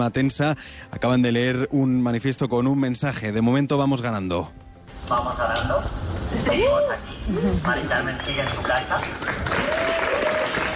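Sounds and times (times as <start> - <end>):
speech: 0.0 - 10.7
people applauding at a protest gathering: 7.4 - 10.7.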